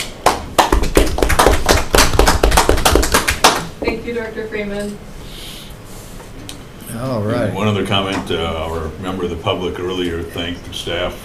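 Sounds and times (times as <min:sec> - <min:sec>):
meeting audience applauding: 0:00.2 - 0:03.7
speech: 0:03.9 - 0:05.1, 0:06.9 - 0:11.2.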